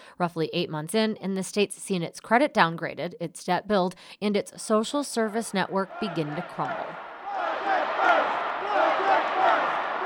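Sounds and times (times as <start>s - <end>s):
speech: 0.2s - 7.1s
crowd of demonstrators chanting together outside: 5.8s - 10.0s.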